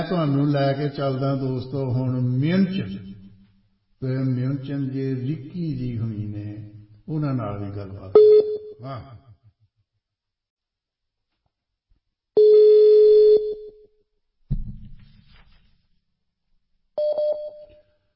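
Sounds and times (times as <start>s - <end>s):
speech: 0.0s - 3.1s, 4.0s - 9.2s
telephone line tones while placing a call to a radio caller: 12.4s - 13.8s, 17.0s - 17.8s.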